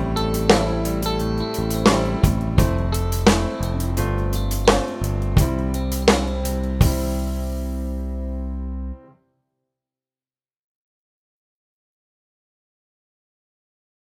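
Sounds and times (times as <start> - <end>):
improvised melody on C, A, E and G: 0.0 - 9.2.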